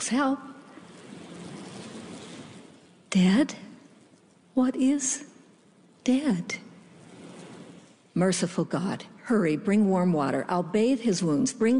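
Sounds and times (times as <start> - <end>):
speech: 0.0 - 0.6, 3.1 - 3.7, 4.6 - 5.3, 6.1 - 6.6, 8.2 - 11.7
storm wind: 0.0 - 4.6, 5.8 - 8.2.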